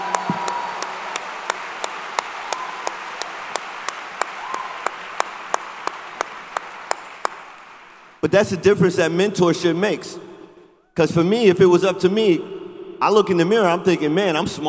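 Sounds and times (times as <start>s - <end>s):
audience applause: 0.0s - 8.2s
speech: 8.2s - 10.3s, 11.0s - 14.6s.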